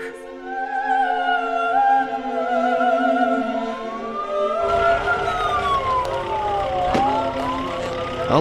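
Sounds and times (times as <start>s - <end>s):
ambulance siren wailing carrying dead and wounded from a market: 0.4s - 8.3s
engine and traffic noise: 3.9s - 8.3s.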